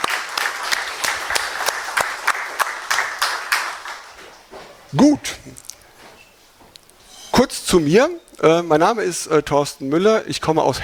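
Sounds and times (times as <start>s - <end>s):
audience applause: 0.0s - 4.5s
speech: 4.9s - 5.6s, 7.4s - 10.8s.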